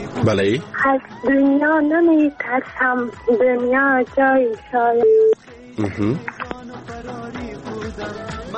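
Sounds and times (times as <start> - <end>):
speech: 0.3 - 6.5
telephone line tone after a caller's line drops: 5.0 - 5.4.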